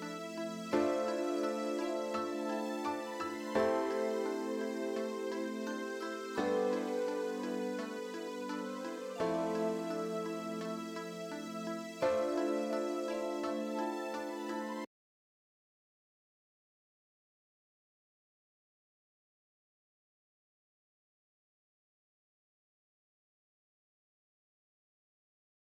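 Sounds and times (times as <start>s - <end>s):
equalized music: 0.0s - 14.9s.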